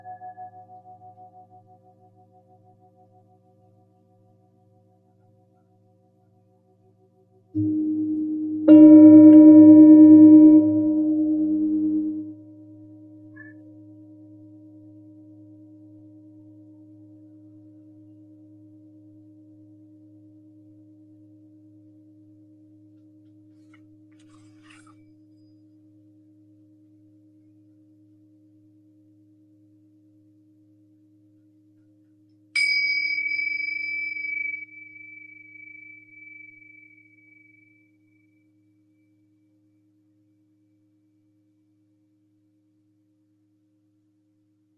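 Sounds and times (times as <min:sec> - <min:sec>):
small high bell-like ping: 0:00.0 - 0:01.3, 0:07.6 - 0:12.4, 0:32.6 - 0:38.5
singing bowl struck and ringing: 0:00.0 - 0:01.6, 0:07.6 - 0:14.3, 0:32.6 - 0:39.1.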